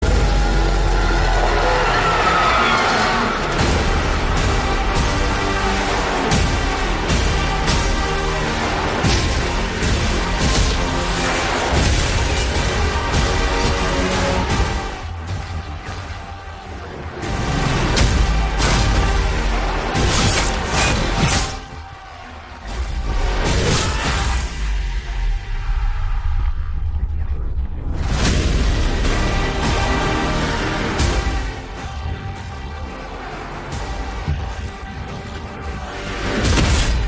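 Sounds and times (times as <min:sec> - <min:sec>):
trailer background music ringtone: 0:00.0 - 0:37.0.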